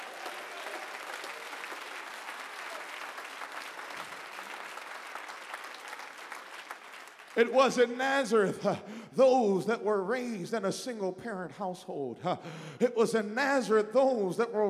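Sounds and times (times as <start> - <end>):
audience clapping hands: 0.0 - 8.0
speech: 7.4 - 14.6.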